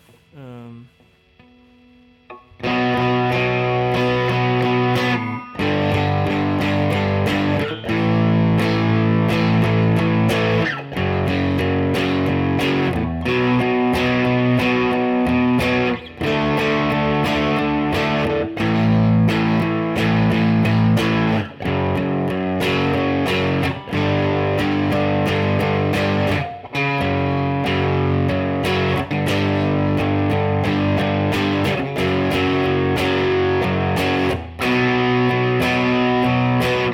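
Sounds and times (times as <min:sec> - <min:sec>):
punk-style power chords through the Fassmaster: 0:00.0 - 0:36.9.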